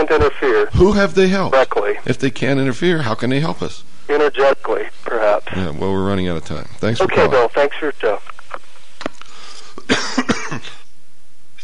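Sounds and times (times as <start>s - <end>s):
speech: 0.0s - 8.4s
person coughing: 9.8s - 10.8s
throat clearing: 9.8s - 10.8s.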